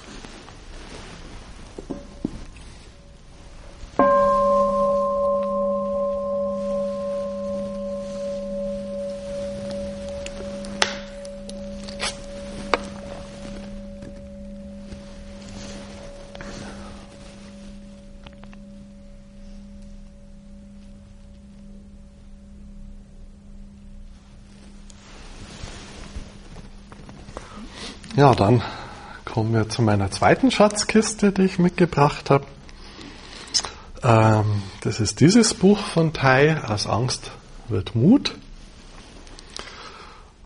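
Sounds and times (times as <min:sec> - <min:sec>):
single bell struck and ringing: 0:04.0 - 0:26.7
speech: 0:28.2 - 0:28.8, 0:29.4 - 0:32.6, 0:34.0 - 0:38.4.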